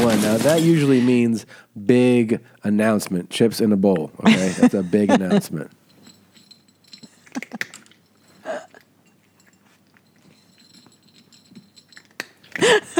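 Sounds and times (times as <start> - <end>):
speech: 0.2 - 5.8, 7.4 - 7.7, 12.6 - 12.9
laughter: 4.2 - 5.7
cat eating kibble: 5.5 - 12.6.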